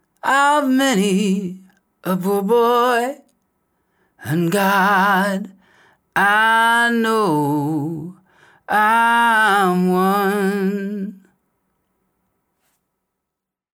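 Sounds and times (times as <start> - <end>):
person singing: 0.2 - 3.3, 4.2 - 5.6, 6.2 - 11.3.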